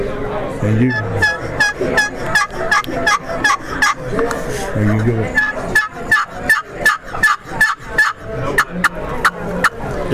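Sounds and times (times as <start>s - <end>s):
speech: 0.0s - 2.2s, 2.8s - 5.5s
hand-operated turkey call yelps: 0.9s - 4.0s, 5.3s - 9.8s.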